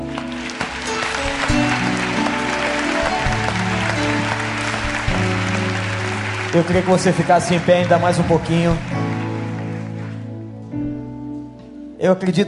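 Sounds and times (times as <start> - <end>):
audience applause: 0.0 - 10.4
speech: 6.5 - 9.0, 12.0 - 12.4.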